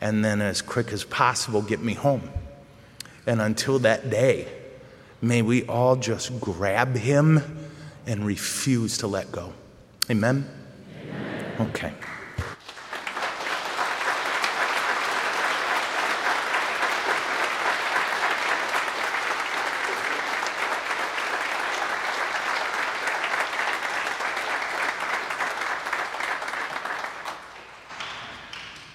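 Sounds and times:
speech: 0.0s - 2.4s, 3.2s - 4.6s, 5.2s - 12.2s
audience applause: 12.0s - 28.9s.

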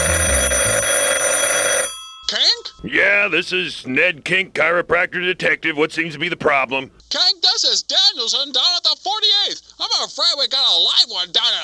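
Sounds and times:
telephone ringing: 0.0s - 3.2s
speech: 2.8s - 11.6s.

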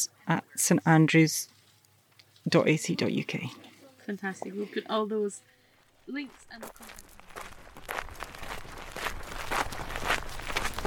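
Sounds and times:
speech: 0.0s - 1.5s, 2.4s - 5.5s, 6.1s - 7.1s
footsteps walking across a golf course at St Andrews: 5.8s - 10.8s.

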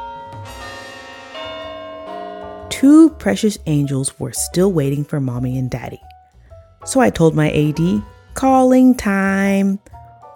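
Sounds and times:
clock striking the hour: 0.0s - 4.0s
speech: 2.8s - 6.0s, 6.9s - 10.0s.

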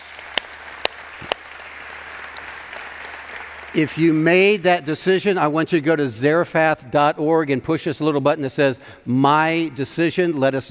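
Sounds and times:
sharp loud claps: 0.0s - 4.2s
church congregation clapping during a service: 0.0s - 4.7s
speech: 3.8s - 10.6s.

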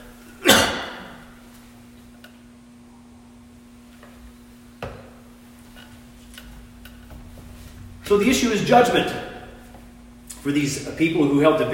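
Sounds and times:
throat clearing: 0.4s - 1.2s
speech: 8.1s - 9.3s, 10.4s - 11.7s.

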